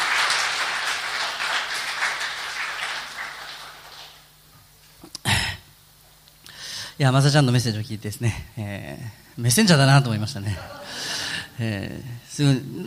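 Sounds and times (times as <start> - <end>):
room full of people applauding in welcome: 0.0 - 4.3
speech: 7.0 - 12.8.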